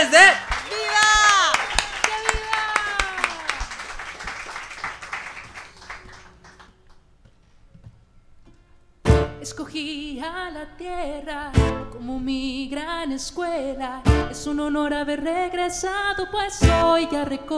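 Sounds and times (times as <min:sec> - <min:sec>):
audience applause: 0:00.0 - 0:07.0
speech: 0:10.6 - 0:17.5.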